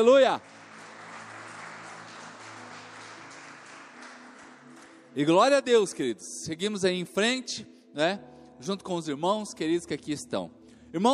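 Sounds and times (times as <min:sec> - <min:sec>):
speech: 0:00.0 - 0:00.5, 0:05.2 - 0:11.1
audience clapping: 0:00.0 - 0:06.0.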